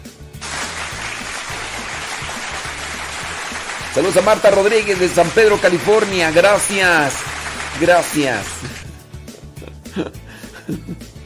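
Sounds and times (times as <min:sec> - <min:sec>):
applause sound effect: 0:00.4 - 0:08.9
speech: 0:04.0 - 0:08.8, 0:10.0 - 0:11.1.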